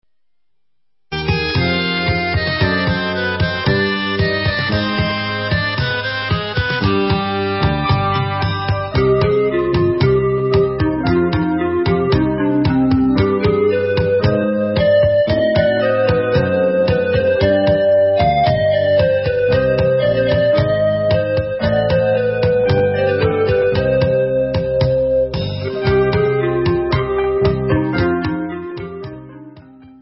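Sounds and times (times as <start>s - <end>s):
instrumental music: 1.1s - 29.9s.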